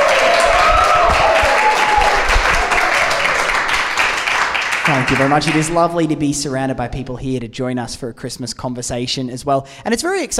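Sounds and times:
cheers and whistles: 0.0s - 3.7s
live audience applauding: 0.0s - 5.9s
speech: 5.1s - 10.3s.

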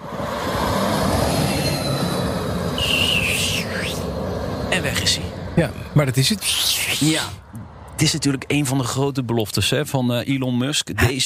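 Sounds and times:
Tesla vehicle driving on test track in Fremont: 0.0s - 10.7s
speech: 5.1s - 11.2s.

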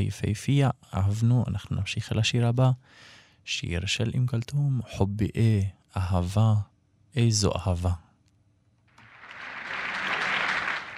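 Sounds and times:
speech: 0.0s - 8.0s
audience applause in a concert recording: 9.0s - 10.9s.

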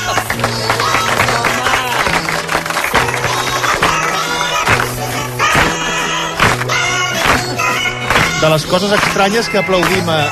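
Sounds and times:
Christmas song in sped-up chipmunk-style voices: 0.0s - 10.3s
speech: 8.5s - 10.3s.

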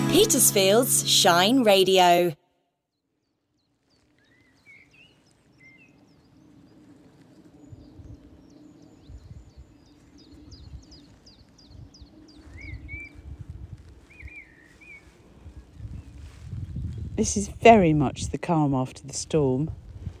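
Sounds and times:
speech: 0.2s - 2.4s, 17.2s - 19.8s
birdsong: 2.9s - 13.4s, 14.0s - 16.2s.

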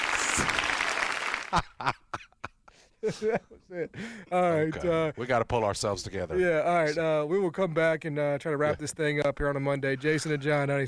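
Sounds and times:
applause: 0.0s - 1.8s
speech: 0.4s - 0.6s, 1.5s - 2.0s, 3.0s - 10.8s.

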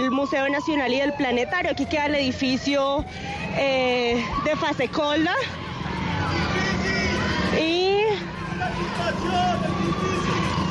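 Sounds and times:
speech: 0.0s - 5.7s
protesters shouting in the background: 3.4s - 10.6s.

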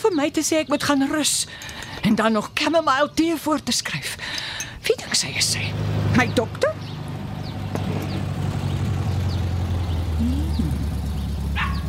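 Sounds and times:
speech: 0.1s - 6.8s
rattling old kombi van pulling in: 5.5s - 11.8s.

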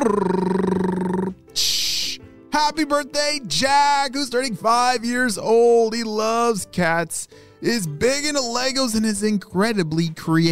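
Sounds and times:
speech: 0.0s - 0.8s, 2.6s - 10.5s
voice imitating a drum roll: 0.0s - 1.8s.

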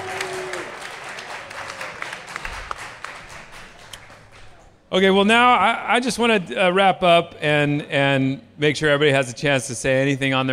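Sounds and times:
audience applause for volunteers: 0.0s - 4.6s
speech: 4.9s - 10.5s.

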